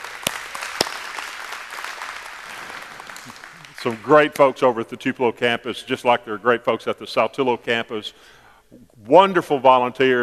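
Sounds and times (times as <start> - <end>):
audience applauding: 0.0 - 4.4
speech: 3.8 - 10.2.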